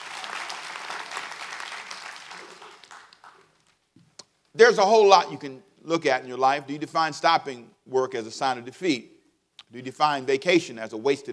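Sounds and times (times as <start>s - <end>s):
audience clapping hands: 0.0s - 3.9s
speech: 4.6s - 9.1s, 9.7s - 11.3s.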